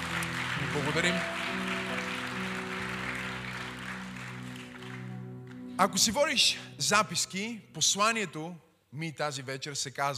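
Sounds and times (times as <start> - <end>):
audience clapping: 0.0 - 6.4
speech: 0.7 - 1.4, 5.8 - 10.1.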